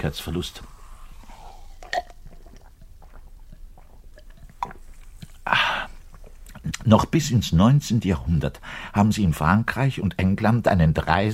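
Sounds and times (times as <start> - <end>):
speech: 0.0 - 0.7, 6.9 - 11.3
double bass player gulping beer: 0.6 - 6.9
loud rough burp: 1.8 - 2.3.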